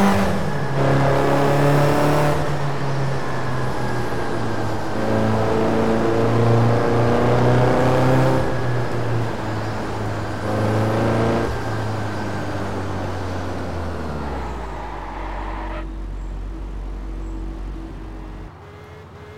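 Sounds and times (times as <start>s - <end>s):
1995 BMW M5 E34 engine: 0.0s - 19.3s.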